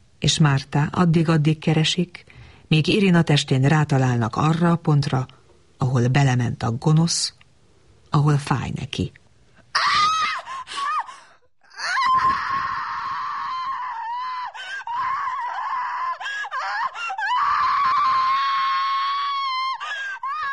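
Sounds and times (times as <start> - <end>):
speech: 0.2 - 7.4, 8.1 - 9.2
woman screaming in agony: 9.7 - 20.5.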